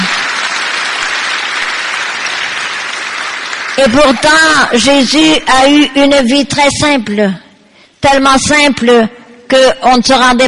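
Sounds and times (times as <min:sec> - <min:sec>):
congregation applause at a French-language church service: 0:00.0 - 0:05.2
speech: 0:03.8 - 0:07.4, 0:08.0 - 0:10.4.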